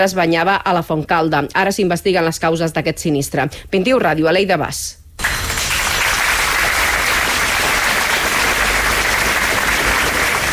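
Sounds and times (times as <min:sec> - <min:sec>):
speech: 0:00.0 - 0:05.0
applause after a minute of silence in front of Gandesa town hall: 0:05.2 - 0:10.5.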